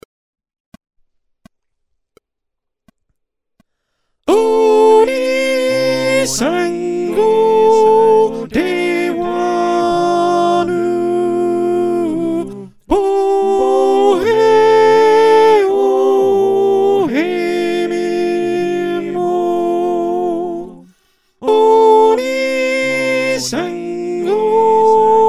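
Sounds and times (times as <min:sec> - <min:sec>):
choir with soprano: 0:04.3 - 0:25.2.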